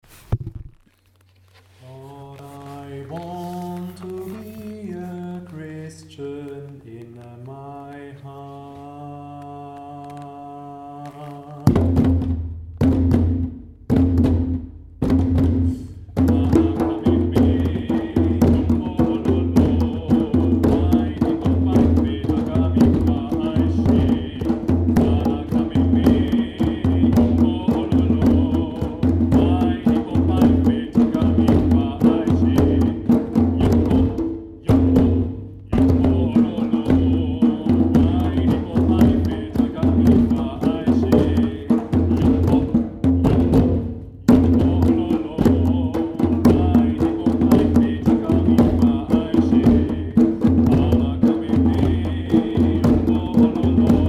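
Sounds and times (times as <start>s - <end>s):
drums: 11.1s - 54.0s.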